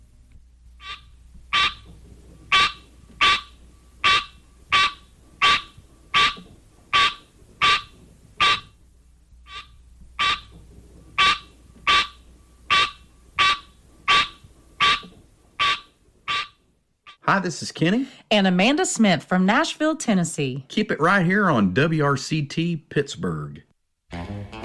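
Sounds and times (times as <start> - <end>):
green tree frog Hyla Scenaria calling: 0.8 - 1.9, 2.5 - 8.8, 9.4 - 10.6, 11.2 - 17.2
speech: 17.3 - 23.7.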